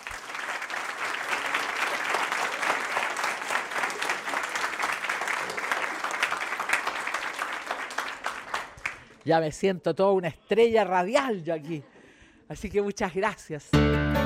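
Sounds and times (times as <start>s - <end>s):
audience applause in a library: 0.0s - 9.2s
speech: 9.3s - 11.9s, 12.5s - 14.1s.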